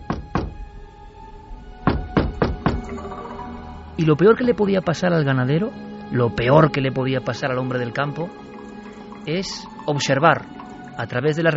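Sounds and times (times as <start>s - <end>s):
knocking on a wooden door: 0.0s - 0.6s, 1.8s - 3.0s
speech: 4.0s - 8.5s, 9.2s - 11.5s.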